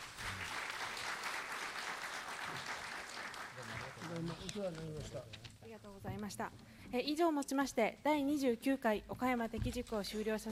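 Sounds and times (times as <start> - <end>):
audience applause: 0.0 - 5.2
speech: 4.0 - 10.4.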